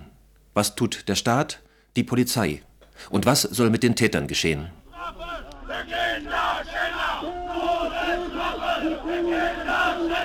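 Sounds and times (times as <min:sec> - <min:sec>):
speech: 0:00.6 - 0:05.2
men and women shouting for the death penalty: 0:04.8 - 0:10.2.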